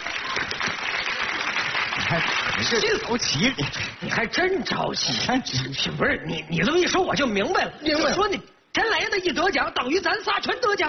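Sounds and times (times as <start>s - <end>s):
audience applause: 0.0s - 3.9s
speech: 2.1s - 10.8s.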